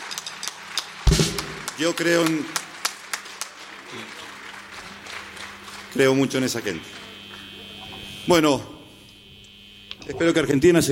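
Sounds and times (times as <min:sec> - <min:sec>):
audience clapping for volunteers who run soup kitchens and food programmes: 0:00.0 - 0:07.2
speech: 0:01.8 - 0:02.6, 0:06.0 - 0:07.0, 0:08.2 - 0:08.7, 0:10.1 - 0:10.8.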